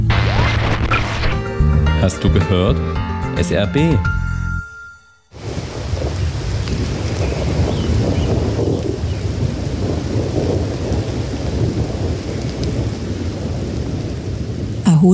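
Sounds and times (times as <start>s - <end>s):
heavy rain: 0.1s - 1.4s, 5.4s - 15.1s
speech: 2.0s - 4.2s
rolling thunder: 5.4s - 14.9s.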